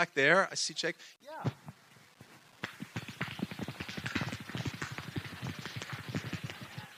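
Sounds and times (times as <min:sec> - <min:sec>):
speech: 0:00.0 - 0:01.6
rapid world-record style hand clapping: 0:02.6 - 0:06.9.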